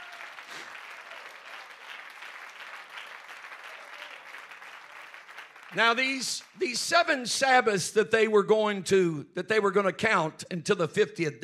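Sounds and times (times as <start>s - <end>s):
people clapping hands: 0.0s - 6.8s
speech: 5.7s - 11.4s.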